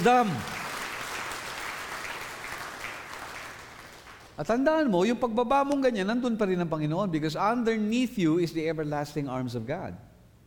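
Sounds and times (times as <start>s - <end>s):
speech: 0.0s - 0.6s, 4.4s - 10.1s
church congregation applauding during a sermon: 0.0s - 4.4s.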